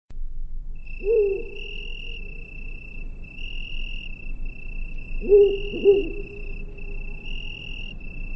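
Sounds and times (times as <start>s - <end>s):
bird hooting: 0.9s - 2.6s, 5.1s - 7.3s.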